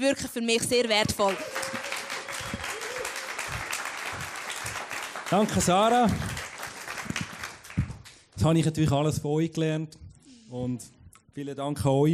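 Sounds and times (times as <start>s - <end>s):
speech: 0.0s - 1.6s, 5.3s - 6.3s, 8.4s - 12.1s
audience applause: 1.2s - 8.2s.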